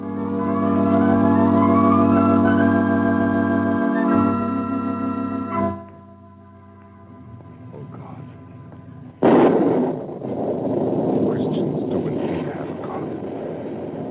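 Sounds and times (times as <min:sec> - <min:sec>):
sustained slowly rising tones: 0:00.0 - 0:11.2
loud crack of thunder and rolling rumble: 0:07.2 - 0:14.0.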